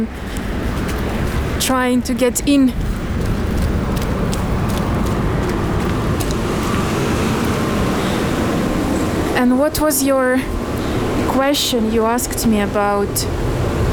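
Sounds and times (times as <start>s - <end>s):
speech: 0.0s - 0.4s, 1.6s - 3.0s, 9.4s - 10.6s, 11.4s - 13.6s
tram waiting at a stop: 0.0s - 9.6s
street traffic: 0.0s - 13.9s.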